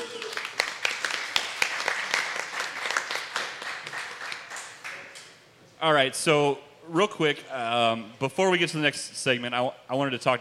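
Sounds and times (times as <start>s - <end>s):
audience applause: 0.0s - 5.1s
speech: 5.8s - 10.3s.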